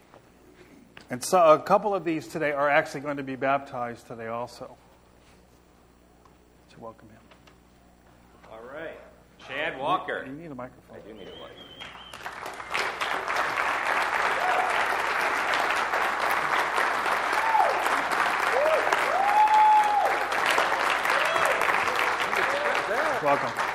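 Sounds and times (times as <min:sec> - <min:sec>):
speech: 0:01.1 - 0:04.8, 0:06.8 - 0:07.3, 0:09.8 - 0:11.6, 0:23.2 - 0:23.6
audience applauding: 0:11.3 - 0:23.7
whoops and voices calling out: 0:18.5 - 0:20.2.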